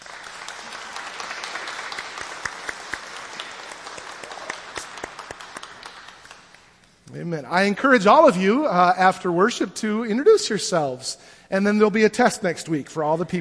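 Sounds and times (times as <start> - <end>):
audience applause: 0.0 - 6.7
speech: 7.1 - 13.3.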